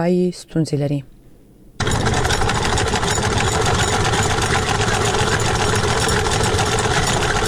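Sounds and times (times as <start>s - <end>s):
speech: 0.0s - 1.2s
hand-turned sewing machine used by a woman tailor in Kunar Afghanistan: 1.8s - 7.4s.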